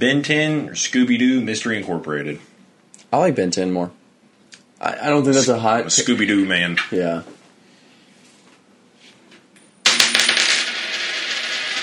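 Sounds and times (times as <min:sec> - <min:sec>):
speech: 0:00.0 - 0:02.5, 0:03.1 - 0:04.0, 0:04.8 - 0:07.4
flipped coin landing and spinning: 0:09.6 - 0:11.8.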